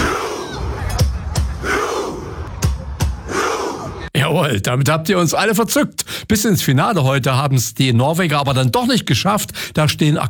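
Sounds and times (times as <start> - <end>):
football fans' Viking rowing war chant: 0.0 - 4.1
speech: 4.4 - 10.2.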